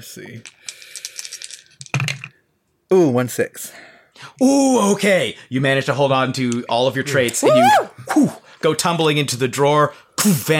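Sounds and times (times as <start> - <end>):
speech: 0.0 - 0.8, 2.9 - 10.5
dice being rolled: 0.4 - 2.4.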